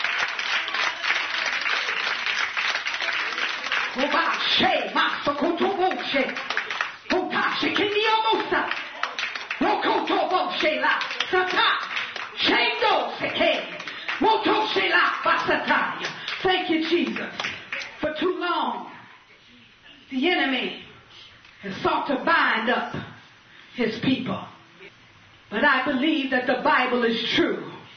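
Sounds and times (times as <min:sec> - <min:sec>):
audience clapping hands: 0:00.0 - 0:18.0
speech: 0:04.5 - 0:05.4, 0:10.4 - 0:12.6, 0:20.2 - 0:20.8, 0:21.8 - 0:23.0, 0:23.8 - 0:24.5, 0:25.5 - 0:27.7.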